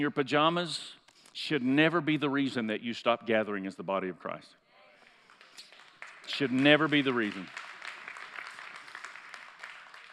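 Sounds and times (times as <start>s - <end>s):
speech: 0.0s - 4.6s, 6.3s - 7.6s
few people clapping: 5.0s - 10.1s.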